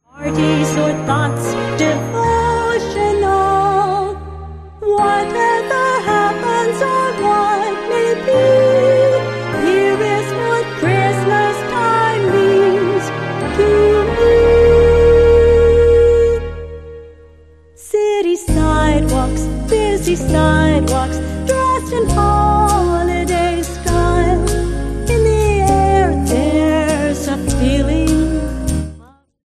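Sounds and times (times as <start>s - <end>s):
jazz music: 0.0s - 4.2s, 4.8s - 29.0s.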